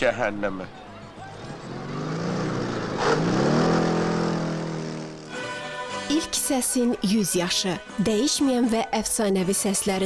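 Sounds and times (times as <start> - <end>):
speech: 0.0 - 0.9, 6.1 - 10.0
car engine revving as it pulls away and drives off: 1.0 - 5.6.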